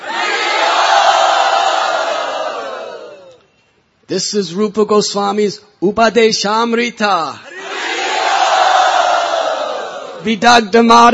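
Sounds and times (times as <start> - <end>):
devotees roaring: 0.0 - 3.3, 7.5 - 10.3
speech: 4.1 - 7.5, 10.2 - 11.1.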